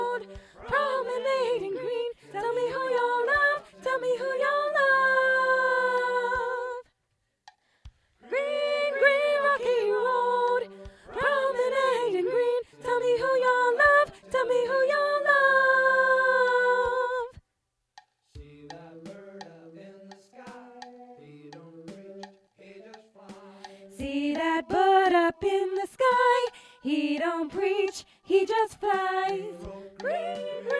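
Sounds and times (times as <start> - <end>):
soprano voice singing a folk song: 0.0 - 6.8, 8.2 - 17.4, 23.6 - 30.7.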